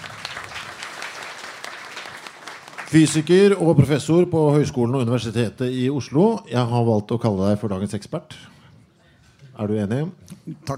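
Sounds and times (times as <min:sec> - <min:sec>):
audience applause: 0:00.0 - 0:03.5
speech: 0:02.9 - 0:08.5, 0:09.6 - 0:10.7.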